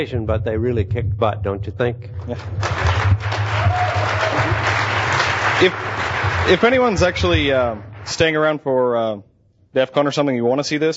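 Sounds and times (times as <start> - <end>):
speech: 0.0 - 4.5, 5.6 - 10.9
audience applause: 2.3 - 8.2.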